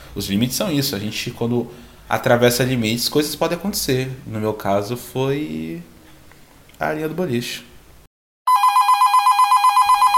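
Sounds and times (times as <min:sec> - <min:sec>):
speech: 0:00.2 - 0:05.9, 0:06.8 - 0:07.7
telephone ringing with an incoming call: 0:08.5 - 0:10.1.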